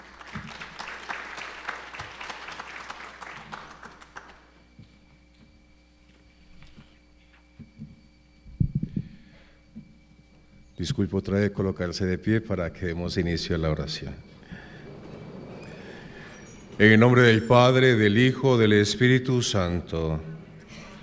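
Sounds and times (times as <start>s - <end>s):
audience applause: 0.0s - 4.6s
speech: 10.8s - 14.3s, 16.8s - 20.3s.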